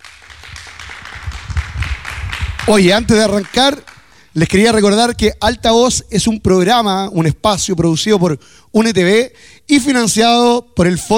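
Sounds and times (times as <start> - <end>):
applause: 0.0 - 4.2
speech: 2.6 - 11.1.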